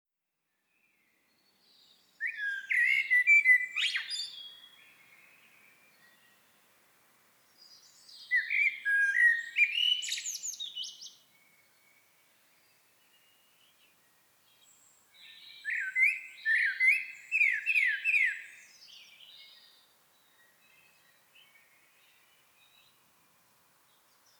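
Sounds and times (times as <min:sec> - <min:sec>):
Eurasian blackbird singing: 0:01.6 - 0:06.5, 0:07.6 - 0:11.2, 0:14.6 - 0:22.9.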